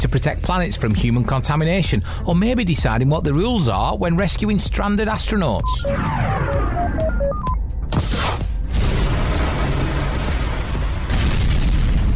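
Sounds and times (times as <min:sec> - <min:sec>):
speech: 0:00.1 - 0:08.2
short tonal beeps: 0:05.6 - 0:07.6
test rocket crashing and exploding: 0:08.0 - 0:12.1
long roaring rumble of debris: 0:08.7 - 0:12.1.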